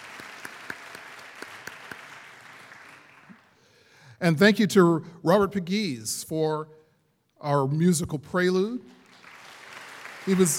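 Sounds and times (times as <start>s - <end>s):
applause: 0.0s - 3.6s, 9.0s - 10.5s
speech: 4.2s - 6.8s, 7.4s - 9.0s, 10.3s - 10.5s.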